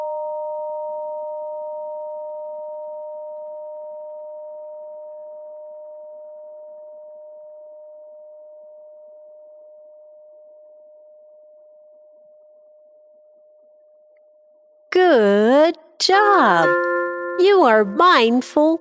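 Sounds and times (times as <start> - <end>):
speech: 15.1 - 16.8, 17.4 - 18.7
chime ringing: 16.1 - 18.4.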